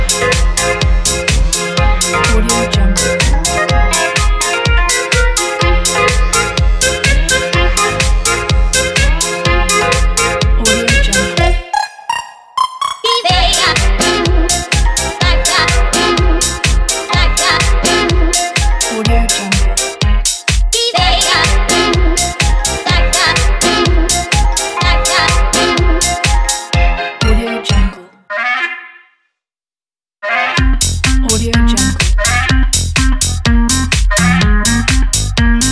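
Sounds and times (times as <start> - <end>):
electronic swing music: 0.0 - 28.6, 30.2 - 35.7.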